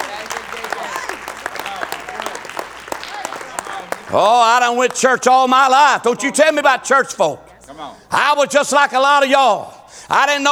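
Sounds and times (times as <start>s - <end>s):
audience clapping: 0.0s - 7.9s
laughter: 0.0s - 10.5s
speech: 4.1s - 10.5s.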